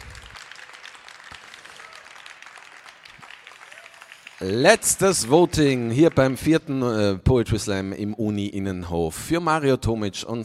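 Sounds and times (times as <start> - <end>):
audience applause: 0.0 - 6.8
speech: 4.4 - 10.4.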